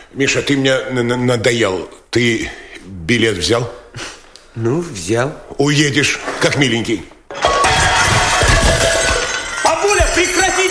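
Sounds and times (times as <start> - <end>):
speech: 0.1 - 7.4
plate smashing: 7.3 - 10.6
shards clattering and tinkling: 7.3 - 10.6.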